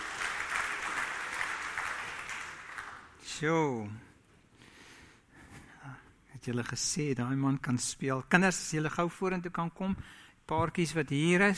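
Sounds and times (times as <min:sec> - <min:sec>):
hand clapping applause: 0:00.0 - 0:03.2
speech: 0:03.4 - 0:04.1, 0:06.4 - 0:11.5.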